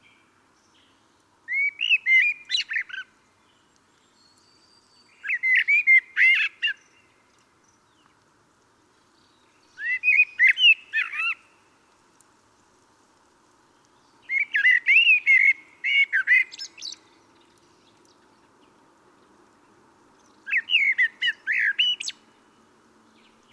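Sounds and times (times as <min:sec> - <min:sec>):
common blackbird singing: 0:00.0 - 0:08.1, 0:09.1 - 0:11.6, 0:13.9 - 0:18.3, 0:20.2 - 0:22.2.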